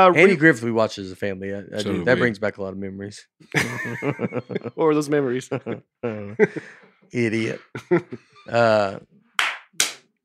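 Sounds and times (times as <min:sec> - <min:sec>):
speech: 0:00.0 - 0:09.1
laughter: 0:03.5 - 0:09.0
hand clapping: 0:09.4 - 0:10.0.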